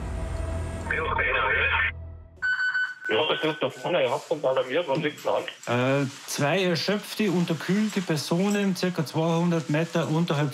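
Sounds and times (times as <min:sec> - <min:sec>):
speech: 0:01.0 - 0:02.0, 0:03.1 - 0:10.5
mountain rescue alarm: 0:02.4 - 0:04.2.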